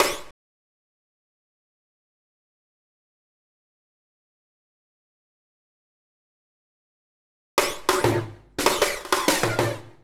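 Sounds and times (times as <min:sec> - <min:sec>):
drum rolls and fills: 0:07.8 - 0:10.0.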